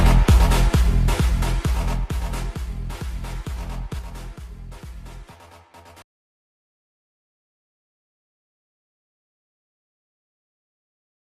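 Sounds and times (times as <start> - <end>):
bass: 0.0 - 6.0.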